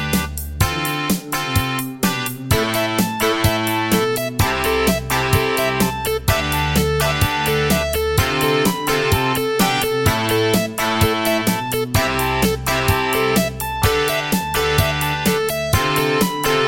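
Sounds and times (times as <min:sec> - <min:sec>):
Terratec MiniWaveSystem WT64 synthesizer sound: 0:00.1 - 0:16.6.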